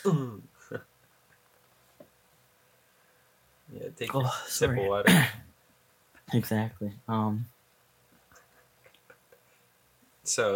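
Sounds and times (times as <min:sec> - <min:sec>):
speech: 0:00.0 - 0:00.9, 0:03.9 - 0:05.4, 0:06.3 - 0:07.5, 0:10.3 - 0:10.5
person clearing throat: 0:04.8 - 0:05.4.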